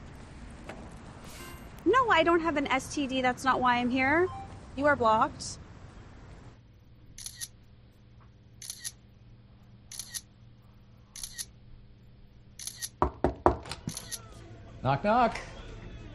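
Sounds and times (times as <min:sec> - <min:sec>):
low hum: 0:00.0 - 0:16.1
speech: 0:02.1 - 0:05.6, 0:14.8 - 0:15.5
camera shutter clicks during photo shoot: 0:07.2 - 0:07.5, 0:08.6 - 0:09.0, 0:09.9 - 0:10.3, 0:11.2 - 0:11.5, 0:12.6 - 0:13.0, 0:13.9 - 0:14.2.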